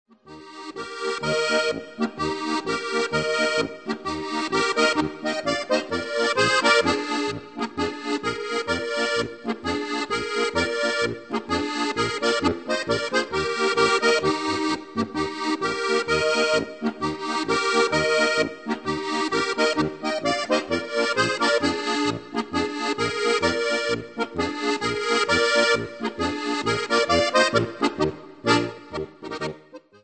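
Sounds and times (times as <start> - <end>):
polka music: 0.1 - 30.0.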